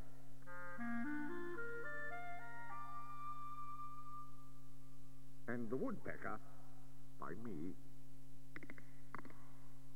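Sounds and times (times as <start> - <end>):
clarinet playing a melody: 0.5 - 4.4
speech: 5.5 - 6.6, 7.2 - 7.9.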